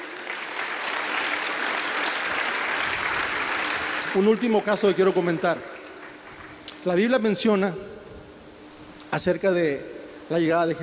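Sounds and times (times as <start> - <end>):
loud crowd applause: 0.0 - 6.6
speech: 4.1 - 5.7, 6.8 - 8.0, 9.1 - 10.8.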